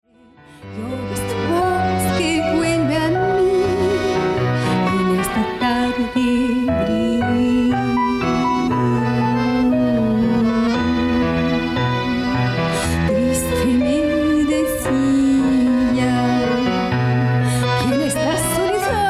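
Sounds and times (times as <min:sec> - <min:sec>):
tango milonga chant: 0:00.8 - 0:19.0.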